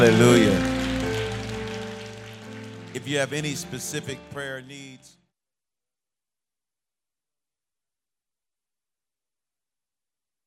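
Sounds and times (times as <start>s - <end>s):
speech: 0.0s - 0.8s, 2.9s - 5.2s
audience applauding with hand claps: 0.0s - 4.2s.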